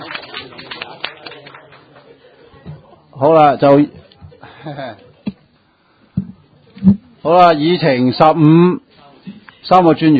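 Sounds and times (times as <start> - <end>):
audience applause: 0.0 - 2.5
laughter: 0.0 - 3.1, 4.0 - 5.4
speech: 3.2 - 4.0, 4.6 - 5.1, 7.2 - 8.8, 9.7 - 10.1.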